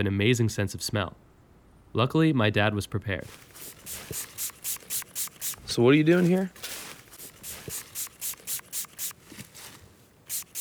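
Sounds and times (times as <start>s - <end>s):
speech: 0.0s - 1.3s, 1.9s - 4.3s, 5.8s - 6.7s
pump sprayer spraying fox urine scent onto a wick: 3.2s - 10.5s.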